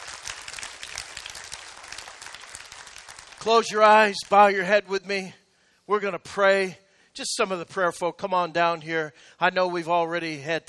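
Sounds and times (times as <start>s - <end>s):
audience clapping in praise: 0.0s - 4.6s
speech: 3.4s - 10.6s.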